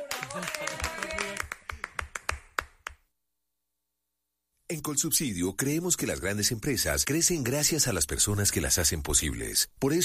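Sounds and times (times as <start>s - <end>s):
applause: 0.0s - 3.0s
speech: 0.3s - 1.0s, 4.7s - 10.0s.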